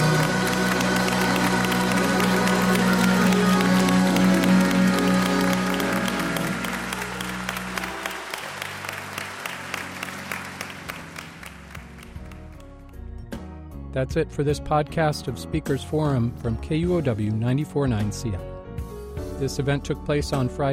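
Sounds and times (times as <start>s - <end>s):
audience clapping hands: 0.0s - 12.8s
speech: 14.0s - 18.5s, 19.4s - 20.7s.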